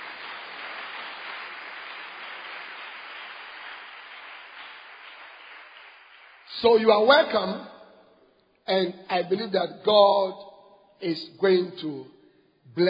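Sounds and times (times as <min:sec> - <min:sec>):
church conference congregation clapping: 0:00.0 - 0:07.8
speech: 0:06.5 - 0:07.7, 0:08.7 - 0:12.8.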